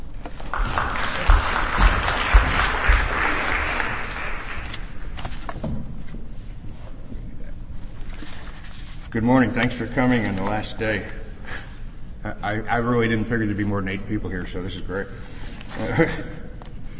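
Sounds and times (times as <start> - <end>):
audience applauding a speaker at a talk: 0.3 - 5.1
speech: 9.2 - 11.2, 12.4 - 16.4.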